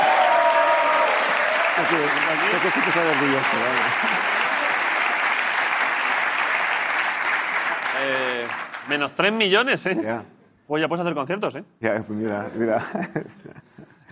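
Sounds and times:
audience applause: 0.0s - 9.2s
speech: 1.8s - 4.5s, 8.0s - 14.1s.

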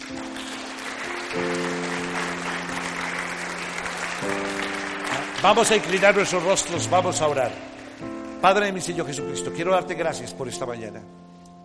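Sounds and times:
applause: 0.0s - 8.7s
speech: 0.1s - 0.4s, 5.4s - 11.2s.

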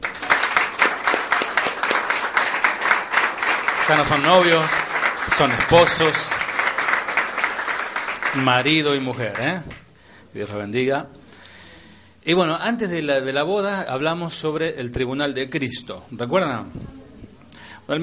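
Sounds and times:
audience applauding the newlyweds: 0.0s - 9.8s
speech: 3.9s - 6.5s, 8.4s - 11.2s, 12.2s - 16.8s.

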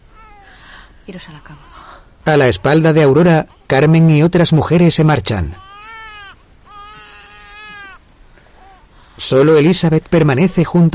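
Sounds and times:
baby crying in its mother's arms: 0.1s - 0.6s, 5.4s - 8.9s
speech: 1.1s - 5.7s, 9.2s - 10.9s.

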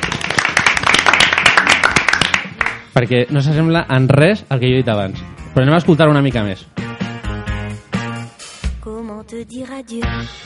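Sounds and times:
applause: 0.0s - 2.9s
speech: 3.0s - 6.8s, 9.3s - 10.4s.

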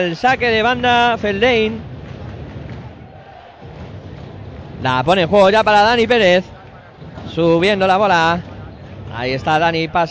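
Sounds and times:
speech: 0.0s - 1.9s, 4.8s - 6.5s, 7.3s - 8.5s, 9.1s - 10.0s
football match crowd roaring and shouting: 0.0s - 10.0s.

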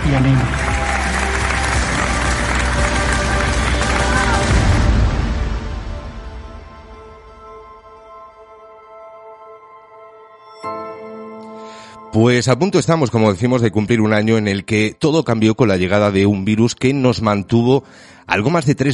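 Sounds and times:
applause from homes: 0.0s - 5.5s
speech: 0.1s - 0.7s, 12.1s - 18.9s.

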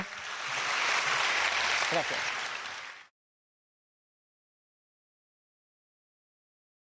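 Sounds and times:
audience applause: 0.0s - 3.1s
speech: 1.9s - 2.3s.

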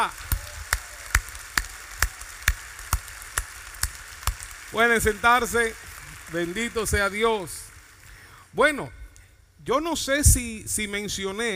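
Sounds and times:
speech: 0.0s - 0.2s, 4.7s - 7.6s, 8.5s - 9.0s, 9.6s - 11.5s
audience applause: 0.0s - 8.4s.

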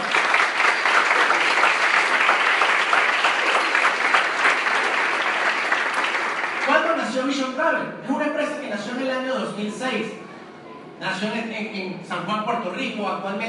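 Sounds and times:
loud audience applause: 0.0s - 7.0s
speech: 7.3s - 8.2s, 8.8s - 10.2s, 11.0s - 13.4s.

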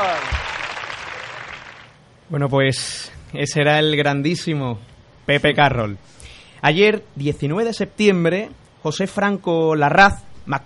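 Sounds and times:
audience applause: 0.0s - 2.0s
speech: 2.3s - 10.6s.

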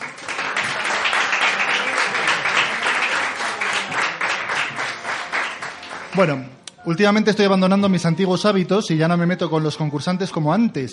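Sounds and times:
applause: 0.0s - 6.5s
speech: 6.2s - 10.9s.

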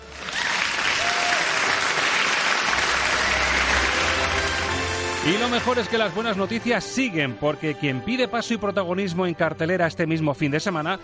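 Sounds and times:
crowd applause and ovation: 0.0s - 5.9s
speech: 5.3s - 11.0s.

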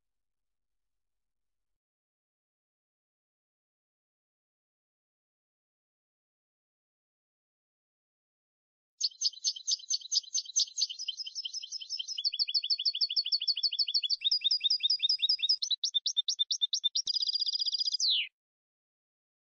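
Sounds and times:
European goldfinch singing: 9.0s - 18.3s.

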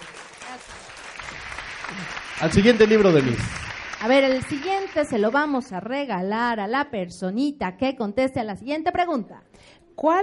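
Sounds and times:
audience applause: 0.0s - 5.6s
speech: 1.9s - 10.2s.

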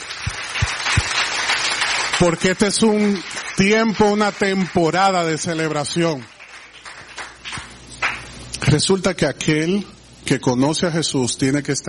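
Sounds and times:
audience applauding: 0.0s - 8.3s
speech: 2.2s - 6.3s, 8.7s - 11.8s.

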